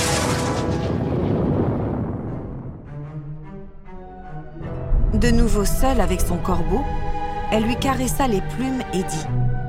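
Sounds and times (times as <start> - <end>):
lightning bolts blasting with roaring crackling noise: 0.0 - 2.8
speech: 5.1 - 9.5.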